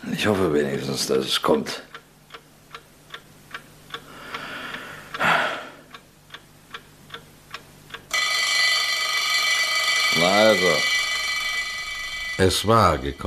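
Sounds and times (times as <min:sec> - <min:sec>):
speech: 0:00.0 - 0:02.0, 0:12.4 - 0:13.2
clock ticking: 0:01.8 - 0:13.2
alarm clock on a bedside table ringing: 0:08.1 - 0:13.2.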